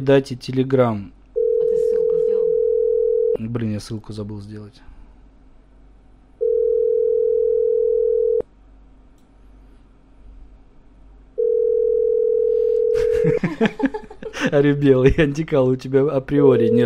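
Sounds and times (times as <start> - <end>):
speech: 0.0 - 1.2, 3.4 - 4.9, 13.2 - 16.8
telephone ringback tone while placing a call: 1.4 - 3.4, 6.4 - 8.4, 11.4 - 13.2, 16.5 - 16.8
laughter: 13.0 - 15.4.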